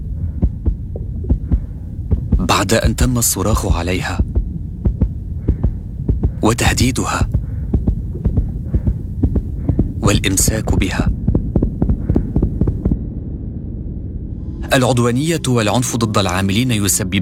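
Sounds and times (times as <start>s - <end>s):
rapid heartbeat of a nurse: 0.0s - 13.0s
low droning hum: 0.0s - 17.1s
speech: 2.5s - 4.3s, 6.4s - 7.3s, 10.1s - 11.2s, 14.7s - 17.1s.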